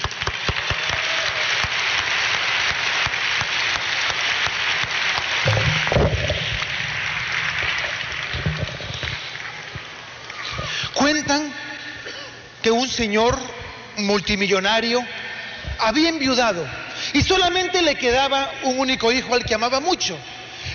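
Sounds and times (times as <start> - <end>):
crowd applauding: 0.0 - 10.8
speech: 12.9 - 15.2, 15.8 - 20.3.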